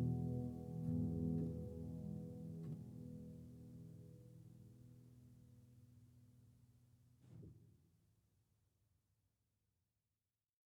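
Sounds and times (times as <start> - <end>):
instrumental music: 0.0 - 4.3.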